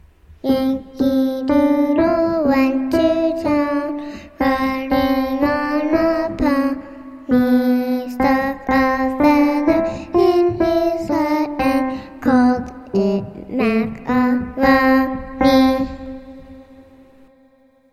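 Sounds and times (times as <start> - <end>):
vocals: 0.4 - 17.0.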